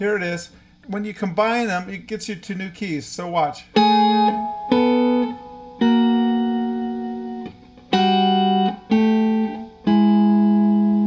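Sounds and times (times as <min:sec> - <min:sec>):
speech: 0:00.0 - 0:04.5
electric guitar strumming blues chords: 0:03.7 - 0:11.0.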